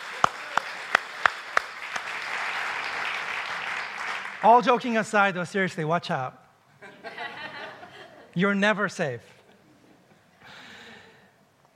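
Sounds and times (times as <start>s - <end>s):
audience applause: 0.0s - 4.6s
speech: 4.4s - 6.4s, 8.4s - 9.4s
laughter: 6.8s - 8.4s.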